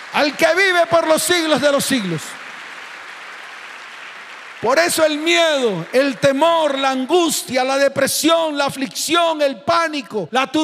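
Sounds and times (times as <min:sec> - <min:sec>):
audience applause: 0:00.0 - 0:07.8
speech: 0:00.2 - 0:02.4, 0:04.6 - 0:10.6.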